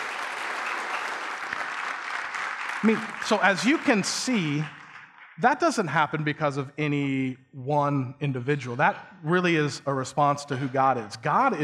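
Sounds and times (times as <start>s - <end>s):
audience applause: 0.0s - 5.4s
speech: 2.8s - 4.8s, 5.4s - 11.6s.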